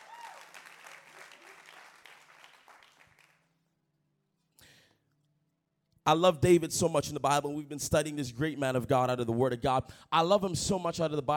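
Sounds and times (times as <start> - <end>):
audience clapping: 0.0 - 3.6
speech: 6.1 - 11.3.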